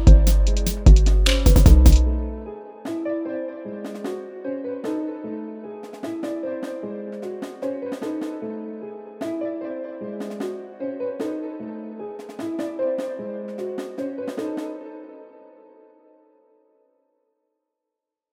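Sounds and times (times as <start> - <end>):
trap beat: 0.0 - 2.4.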